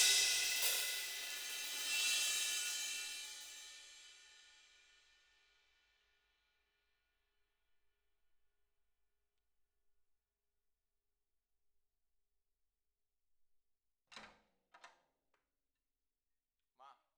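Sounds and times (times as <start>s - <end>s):
ride cymbal: 0.0s - 5.4s.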